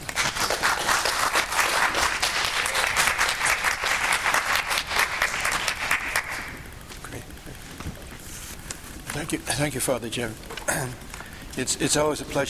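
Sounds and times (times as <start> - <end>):
audience applauding the introduction of a monsignor as a speaker: 0.0 - 6.8
speech: 9.3 - 12.4.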